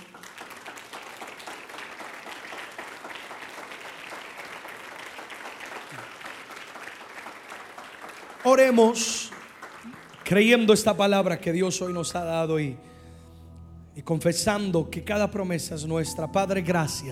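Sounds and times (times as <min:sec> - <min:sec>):
audience applause: 0:00.0 - 0:11.2
speech: 0:08.5 - 0:09.3, 0:10.3 - 0:12.9, 0:14.1 - 0:17.1.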